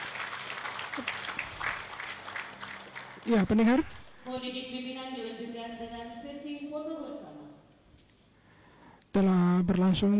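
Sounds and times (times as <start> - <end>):
audience clapping: 0.0 - 4.4
speech: 3.3 - 7.1, 9.2 - 10.1.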